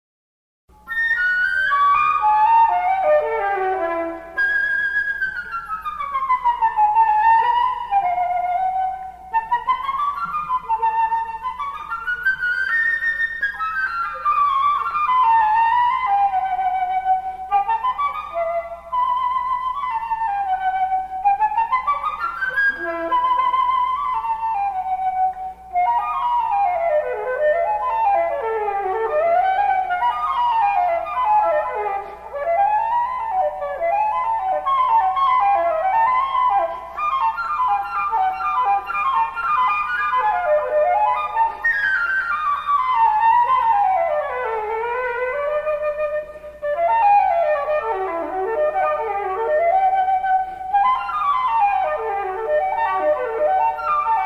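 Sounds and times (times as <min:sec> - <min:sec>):
flute: 0:00.7 - 0:54.2.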